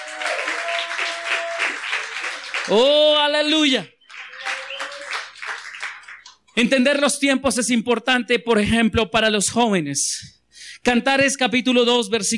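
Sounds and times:
audience clapping: 0.0s - 6.4s
speech: 2.7s - 4.0s, 6.6s - 12.3s.

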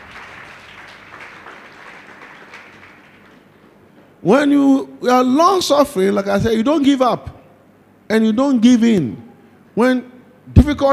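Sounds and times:
audience clapping hands: 0.0s - 3.8s
speech: 4.2s - 7.3s, 8.1s - 9.2s, 9.8s - 10.9s.

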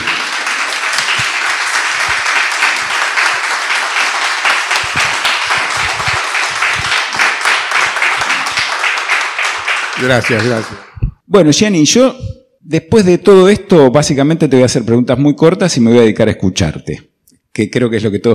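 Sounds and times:
crowd applauding: 0.0s - 11.0s
speech: 10.0s - 18.3s.

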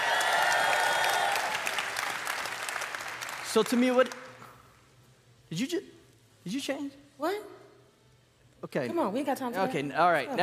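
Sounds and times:
audience applauding and cheering at a live community event: 0.0s - 4.4s
speech: 3.6s - 4.2s, 5.5s - 7.6s, 8.6s - 10.4s.

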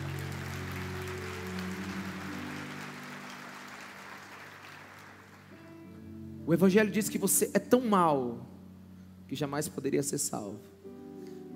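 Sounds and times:
audience applause: 0.0s - 5.6s
speech: 6.5s - 8.6s, 9.3s - 10.8s.

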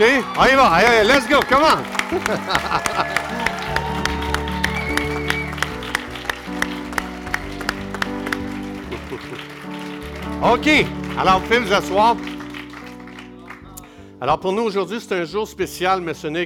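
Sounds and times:
speech: 0.0s - 3.2s, 10.4s - 12.3s, 14.2s - 16.4s
murmur of voices and cheers: 0.0s - 8.3s
laughter: 0.0s - 12.1s
audience applause: 0.0s - 13.7s.

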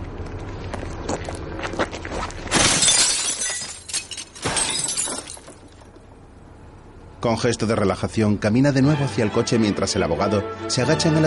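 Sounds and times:
speech: 1.1s - 1.4s, 7.2s - 11.2s
stone smashing a streetlight bulb: 2.5s - 5.9s
glass fragments tinkling: 2.6s - 5.9s.

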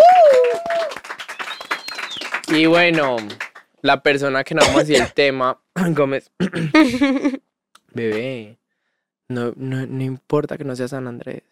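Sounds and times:
vocal whoop: 0.0s - 1.0s
crowd applauding: 0.0s - 3.7s
faint high whistle: 1.2s - 2.4s
speech: 2.5s - 8.6s, 9.3s - 11.5s.

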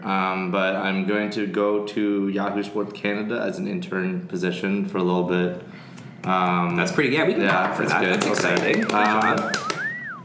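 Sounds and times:
speech: 0.0s - 9.6s
clacking taps: 6.0s - 10.0s
person whistling: 8.7s - 10.2s.

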